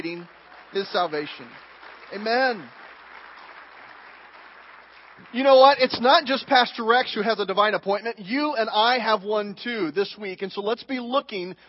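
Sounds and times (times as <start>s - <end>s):
speech: 0.0s - 2.8s, 5.3s - 11.6s
large crowd applauding: 0.0s - 7.0s.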